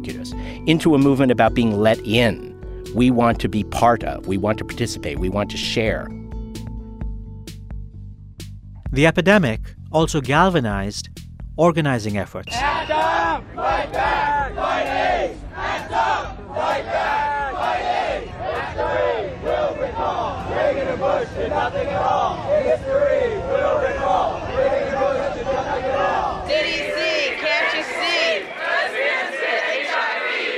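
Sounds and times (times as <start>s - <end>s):
speech: 0.0s - 6.2s, 8.9s - 17.1s
large crowd of protesters chanting and shouting: 12.5s - 30.5s.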